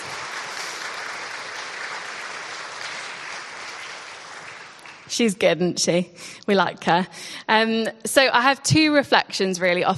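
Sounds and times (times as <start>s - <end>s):
crowd applauding: 0.0s - 5.2s
speech: 5.1s - 9.9s.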